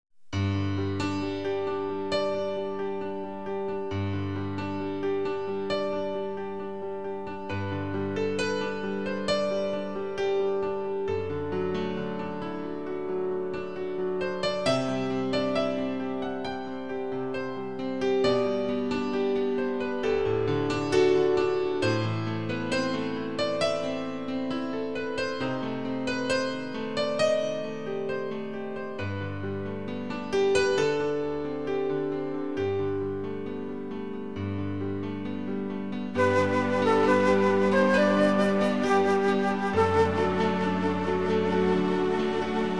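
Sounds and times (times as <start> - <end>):
instrumental music: 0.2 - 42.7.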